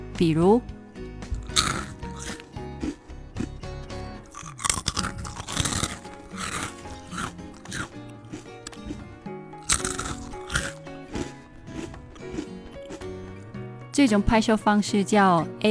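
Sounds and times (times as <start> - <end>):
speech: 0.2 - 0.8, 14.0 - 15.6
crunchy eating and chewing: 1.3 - 13.5.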